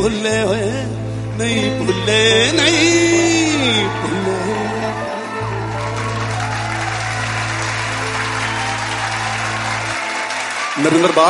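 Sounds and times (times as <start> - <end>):
speech: 0.0 - 4.4, 10.8 - 11.2
audience applause: 2.6 - 11.2.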